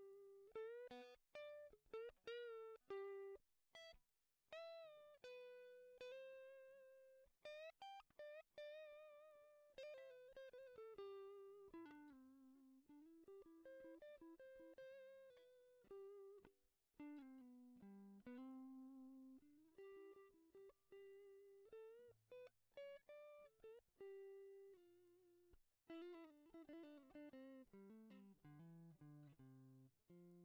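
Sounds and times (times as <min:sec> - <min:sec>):
guitar melody: 0:00.0 - 0:03.9, 0:04.5 - 0:30.4.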